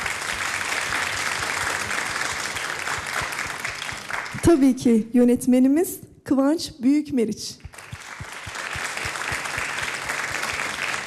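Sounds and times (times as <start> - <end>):
audience applause: 0.0 - 4.5, 7.7 - 11.0
speech: 4.5 - 7.6.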